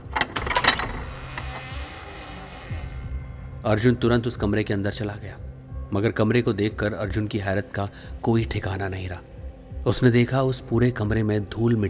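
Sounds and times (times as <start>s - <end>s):
old door opening: 0.0s - 3.2s
speech: 3.6s - 11.8s.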